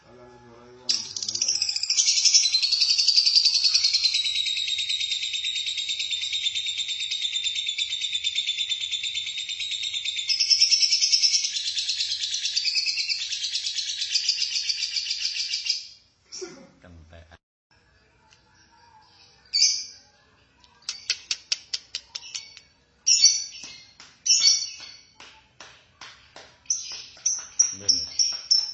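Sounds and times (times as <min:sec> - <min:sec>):
lovebird chattering song: 0:00.9 - 0:15.8, 0:20.8 - 0:23.7.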